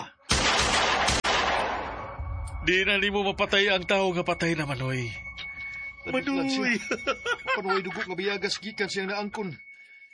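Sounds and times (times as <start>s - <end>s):
rapid gunfire as bullets are emptied into a body: 0.3s - 1.9s
speech: 2.6s - 5.2s, 6.0s - 9.7s
laughter: 6.5s - 8.8s.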